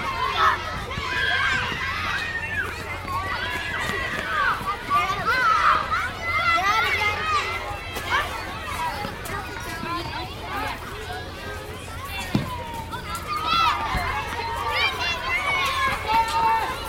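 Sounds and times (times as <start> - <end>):
elementary school ambience: 0.0 - 16.8.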